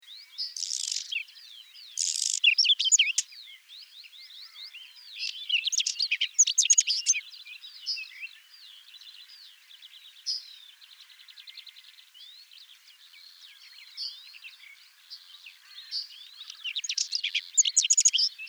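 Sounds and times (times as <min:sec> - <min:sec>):
whinchat singing at Raisting: 0:00.0 - 0:18.4.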